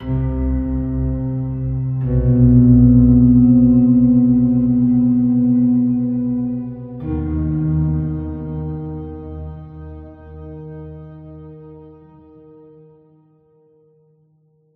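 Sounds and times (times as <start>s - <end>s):
dark piano: 0.0s - 14.2s.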